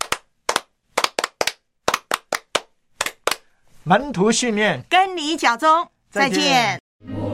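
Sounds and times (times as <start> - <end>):
sharp hand claps during a radio program: 0.0 - 3.5
speech: 3.8 - 7.2.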